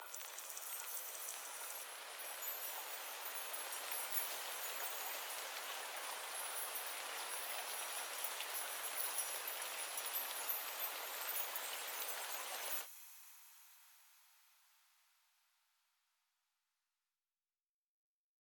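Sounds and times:
nature ambience: 0.0 - 14.8.

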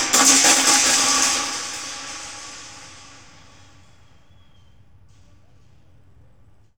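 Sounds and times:
thrash metal music: 0.0 - 3.5.

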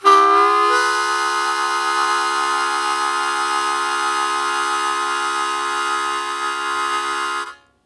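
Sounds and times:
harmonica blues chord attack: 0.0 - 7.6.

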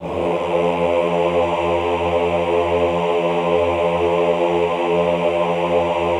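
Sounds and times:
classical choir singing ah: 0.0 - 6.1.

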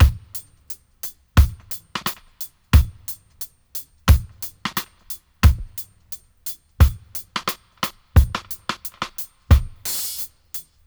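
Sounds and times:
dry dub drum loop: 0.0 - 10.8.

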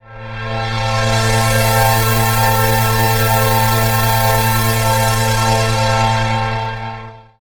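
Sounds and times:
Sequential Circuits synth pads: 0.0 - 7.4.

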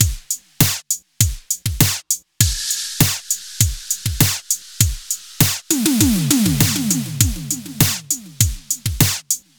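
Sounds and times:
beat: 2.4 - 9.5.

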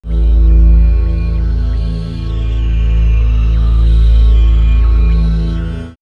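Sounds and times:
swirling black hole synth pads: 0.0 - 6.0.

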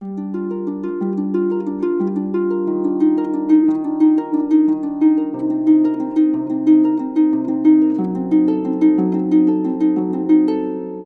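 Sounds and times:
orchestral harp playing G7 Eb7 C7 F#7b chords: 0.0 - 11.0.

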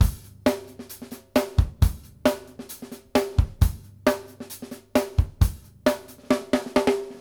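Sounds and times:
drums: 0.0 - 7.1.

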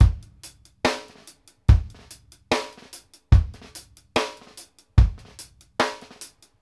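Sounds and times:
reggae kick drum: 0.0 - 2.7, 3.3 - 4.4, 5.0 - 6.1.

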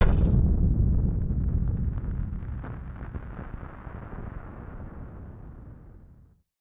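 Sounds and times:
firework sound effect: 0.0 - 6.4.

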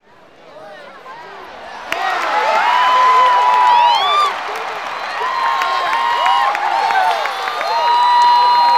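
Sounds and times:
baseball crowd: 0.0 - 8.7.

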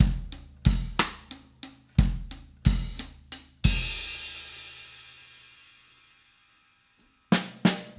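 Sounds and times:
70s analog funk drum fill: 0.0 - 1.4, 2.0 - 4.4.

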